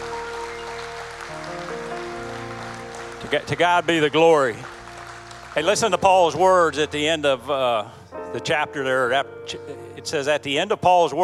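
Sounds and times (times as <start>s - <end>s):
audience applause: 0.0s - 7.3s
sustained keyboard chords: 0.0s - 11.2s
speech: 3.2s - 4.8s, 5.6s - 11.2s.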